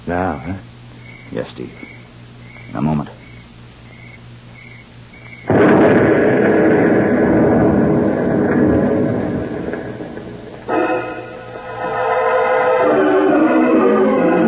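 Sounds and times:
speech: 0.1s - 0.7s, 1.3s - 2.0s, 2.7s - 3.2s
truck explosion: 5.5s - 13.4s.

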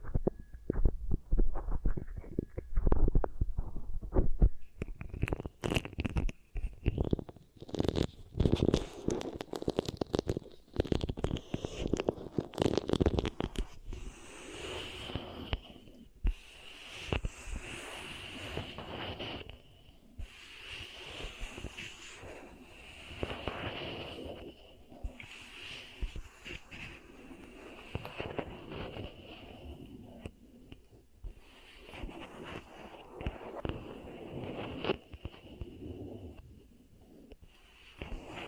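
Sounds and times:
beeswax pressed and kneaded, crackling and popping: 0.0s - 38.4s.

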